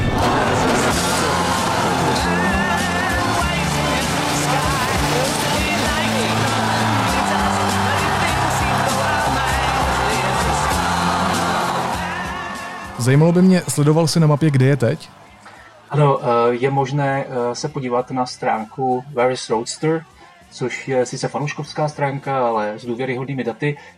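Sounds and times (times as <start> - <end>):
rocket launch roar: 0.0 - 9.6
excited crowd cheering and shouting: 0.0 - 16.3
speech: 13.0 - 15.2, 15.9 - 23.9.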